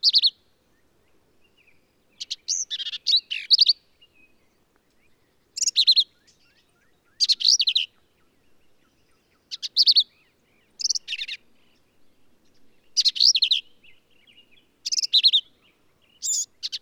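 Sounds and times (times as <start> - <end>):
male black-capped vireo singing sharp slurred notes in Texas hill country: 0.0 - 16.8.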